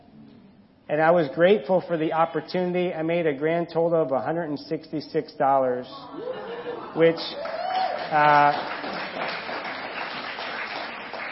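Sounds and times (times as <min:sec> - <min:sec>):
speech: 0:00.9 - 0:08.8
laughter: 0:05.9 - 0:07.4
audience clapping: 0:07.1 - 0:11.3.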